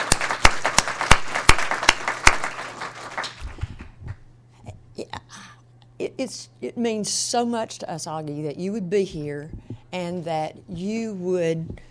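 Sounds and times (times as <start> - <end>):
audience applause: 0.0 - 3.6
speech: 6.2 - 11.8.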